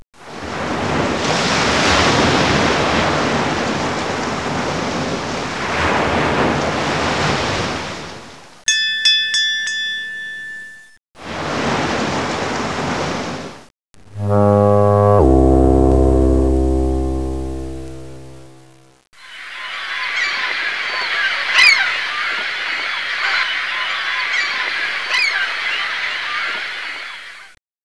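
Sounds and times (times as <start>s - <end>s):
sea: 0.2s - 18.6s, 19.2s - 27.6s.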